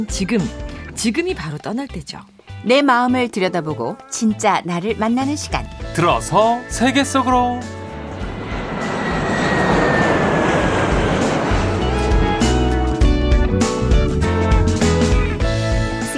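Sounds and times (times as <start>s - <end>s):
speech: 0.0s - 7.8s
airplane taking off: 6.6s - 15.4s.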